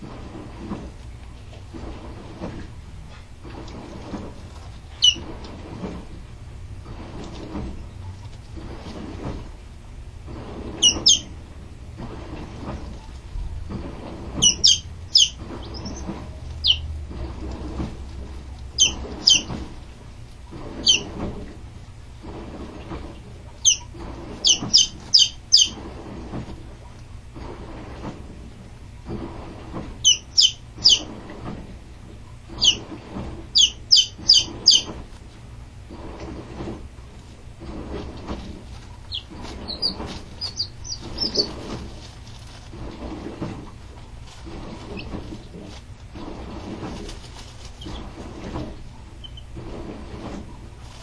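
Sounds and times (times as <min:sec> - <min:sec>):
running washing machine rumbling and swishing: 0:00.0 - 0:51.0
chicken chicks peeping: 0:04.6 - 0:05.4, 0:10.8 - 0:11.3, 0:13.7 - 0:17.9, 0:18.6 - 0:19.7, 0:20.8 - 0:21.2, 0:23.6 - 0:25.9, 0:30.0 - 0:31.1, 0:32.6 - 0:32.9, 0:33.6 - 0:35.0, 0:38.0 - 0:49.6.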